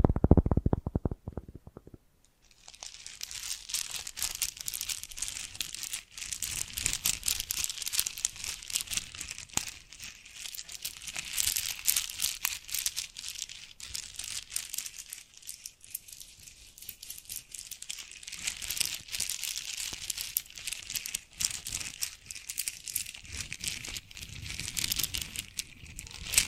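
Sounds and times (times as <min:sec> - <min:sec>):
low thumps and bumps: 0:00.0 - 0:02.0
bracelets and jewelry boxes crinkling and jingling: 0:02.5 - 0:26.4.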